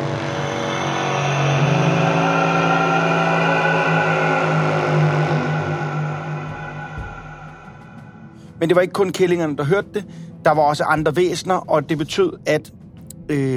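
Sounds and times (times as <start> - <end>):
loud metallic horn blast: 0.0 - 8.6
speech: 8.6 - 13.5.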